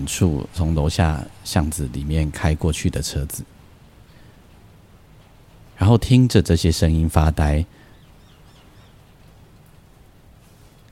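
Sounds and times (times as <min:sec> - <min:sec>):
speech: 0:00.0 - 0:03.6, 0:05.8 - 0:07.8
steady fairly heavy rain falling: 0:00.0 - 0:10.9
faint bird chirps: 0:07.8 - 0:10.0.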